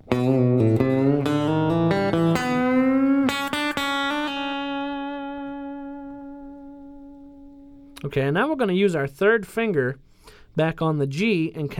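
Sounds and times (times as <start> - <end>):
electric guitar lick: 0.0 - 8.3
speech: 8.2 - 11.7.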